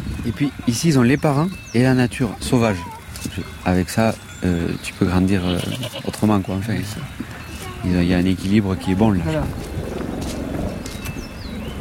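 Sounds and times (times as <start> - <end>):
speech: 0.2 - 9.8
thin high bird chirps: 0.5 - 8.4
helicopter flying overhead: 2.2 - 11.7.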